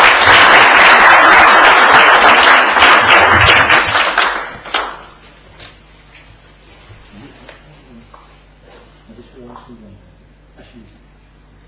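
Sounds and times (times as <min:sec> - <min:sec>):
audience applauding after a naturalisation ceremony: 0:00.0 - 0:05.2.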